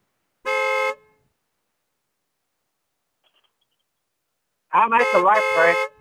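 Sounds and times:
car horn honking: 0.4s - 1.2s, 4.8s - 6.0s
speech: 4.7s - 6.0s.

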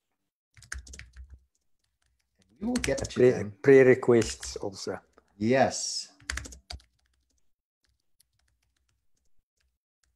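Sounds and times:
computer keyboard typing: 0.5s - 3.4s, 4.1s - 5.4s, 6.2s - 10.1s
speech: 2.6s - 6.5s.

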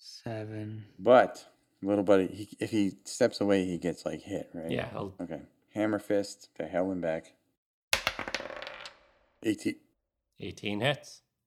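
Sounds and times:
speech: 0.2s - 7.4s, 9.4s - 9.8s, 10.4s - 11.2s
two dice being rolled: 8.0s - 9.3s.

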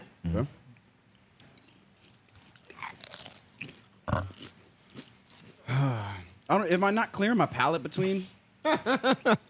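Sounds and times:
speech: 0.4s - 0.6s, 6.5s - 9.4s
crunching truffle-flavored Rap Snacks chips: 2.0s - 5.6s.

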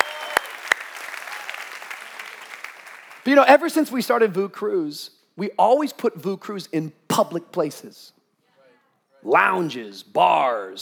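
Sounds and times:
audience clapping: 0.0s - 3.6s
speech: 3.3s - 8.2s, 9.2s - 10.8s.

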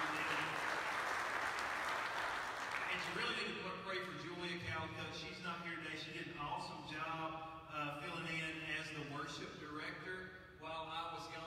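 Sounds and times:
audience applause: 0.0s - 3.4s
speech: 3.0s - 11.4s.

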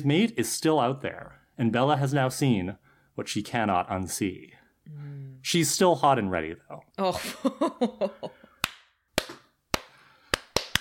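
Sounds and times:
speech: 0.0s - 8.4s
slow clapping: 8.6s - 10.7s.

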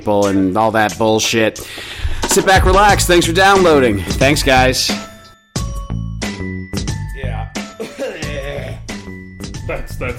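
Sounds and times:
speech: 0.0s - 5.1s
person coughing fit, cough vomiting: 7.8s - 8.8s.

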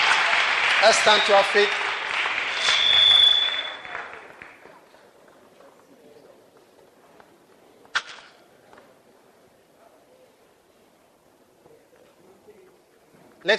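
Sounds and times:
audience clapping: 0.0s - 5.9s
speech: 0.8s - 1.8s.

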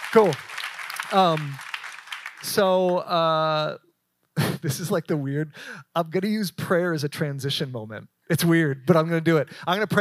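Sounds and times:
crowd clapping: 0.0s - 3.2s
speech: 0.1s - 0.5s, 1.1s - 1.7s, 2.4s - 3.8s, 4.6s - 9.9s.

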